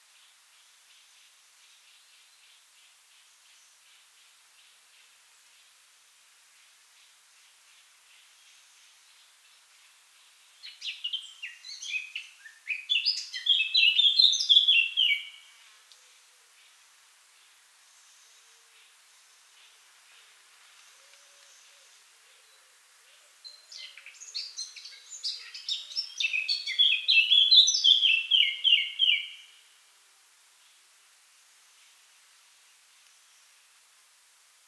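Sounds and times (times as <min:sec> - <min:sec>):
Eurasian blackcap song: 0:10.6 - 0:16.0, 0:17.4 - 0:29.6
speech: 0:10.8 - 0:11.2.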